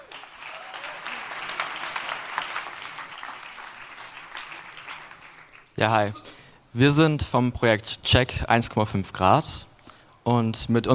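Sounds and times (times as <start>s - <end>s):
audience applause: 0.0s - 5.8s
speech: 5.8s - 9.7s, 10.3s - 10.9s.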